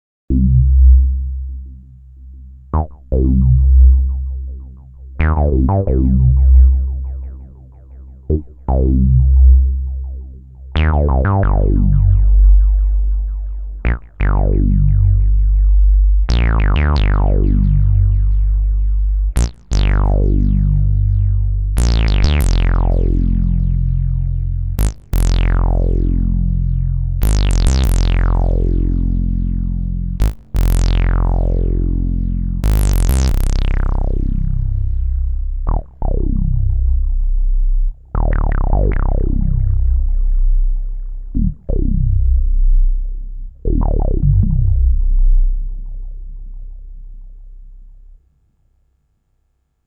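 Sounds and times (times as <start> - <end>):
pulse solo bass: 0.3 - 48.3.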